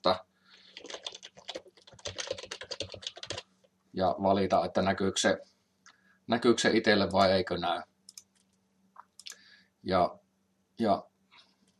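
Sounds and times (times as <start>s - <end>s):
speech: 0.0s - 0.2s, 4.0s - 5.5s, 6.3s - 7.9s, 9.8s - 10.2s, 10.8s - 11.1s
typing on a computer keyboard: 0.7s - 3.4s, 8.1s - 8.6s.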